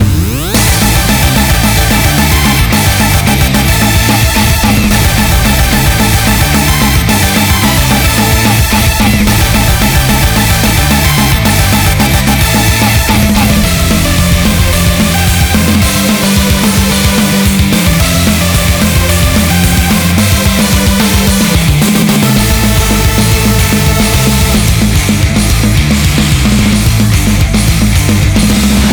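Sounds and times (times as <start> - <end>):
background music: 0.0 - 28.9.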